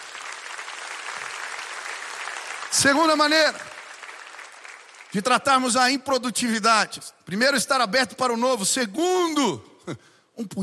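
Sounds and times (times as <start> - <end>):
church congregation clapping at a Portuguese-language service: 0.0 - 6.7
speech: 2.7 - 3.7, 5.1 - 10.6.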